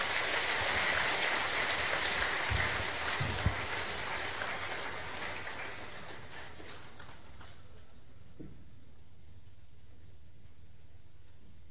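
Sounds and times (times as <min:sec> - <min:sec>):
audience applause: 0:00.0 - 0:07.2.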